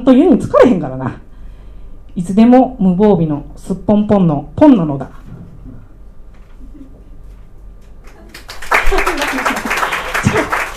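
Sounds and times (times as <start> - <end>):
speech: 0.0 - 1.2, 2.2 - 5.2
audience applause: 8.1 - 10.7.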